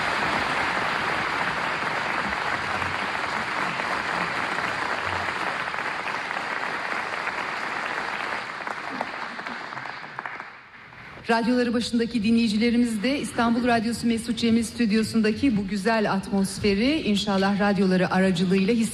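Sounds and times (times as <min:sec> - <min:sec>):
studio audience applauding at a Turkish folk music radio concert in Istanbul: 0:00.0 - 0:11.1
speech: 0:11.3 - 0:18.9.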